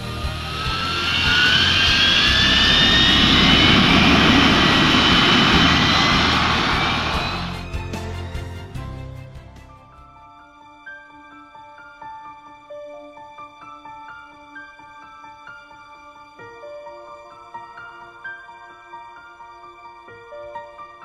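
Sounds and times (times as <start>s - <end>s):
airplane flying low over the ground: 0.0s - 10.1s.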